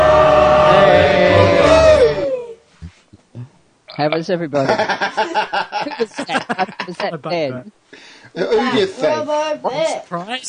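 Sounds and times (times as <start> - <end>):
crowd cheering: 0.0 - 2.6
speech: 4.0 - 10.4
laughter: 4.6 - 7.2.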